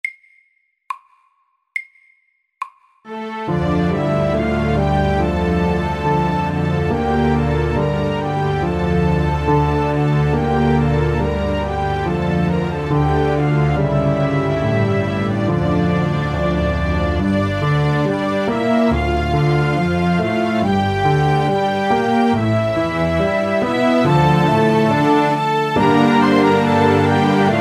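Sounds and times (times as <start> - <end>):
slow old French melody: 3.1 - 27.5.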